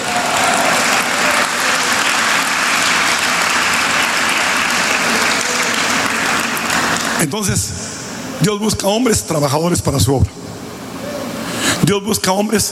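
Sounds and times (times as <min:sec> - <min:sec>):
audience applause: 0:00.0 - 0:07.3
speech: 0:07.2 - 0:07.8, 0:08.4 - 0:10.4, 0:11.8 - 0:12.6.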